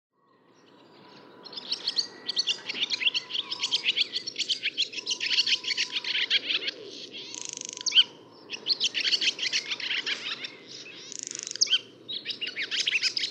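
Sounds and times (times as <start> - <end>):
barn swallow song of twittering high squeaky notes and buzzy stretches: 0.2 - 13.2.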